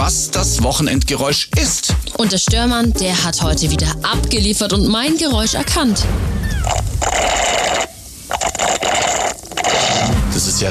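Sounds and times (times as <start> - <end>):
speech: 0.1 - 7.5
slurping a frothy drink through a straw: 6.6 - 10.2.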